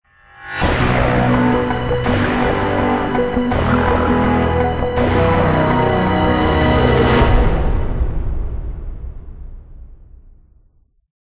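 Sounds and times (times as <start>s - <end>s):
success stinger: 0.5s - 8.6s.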